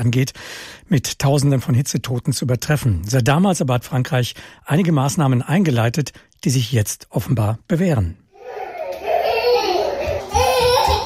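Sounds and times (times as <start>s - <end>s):
speech: 0.0s - 8.2s
small children babbling: 8.3s - 11.0s.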